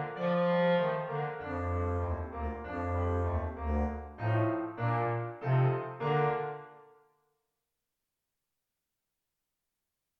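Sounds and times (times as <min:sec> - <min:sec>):
bass clarinet playing a finale: 0:00.0 - 0:06.8
piano: 0:00.0 - 0:07.2.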